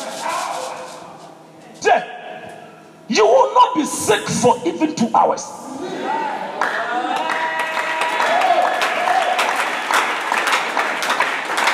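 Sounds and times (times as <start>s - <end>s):
speech: 3.1s - 6.3s
voices and cheering: 5.6s - 10.0s
crowd clapping: 6.5s - 11.7s.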